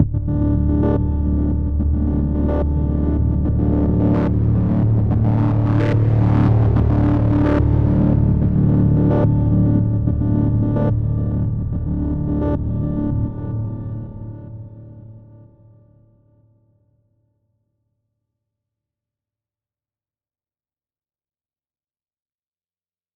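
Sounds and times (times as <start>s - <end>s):
psytrance synth pad: 0.1s - 14.4s.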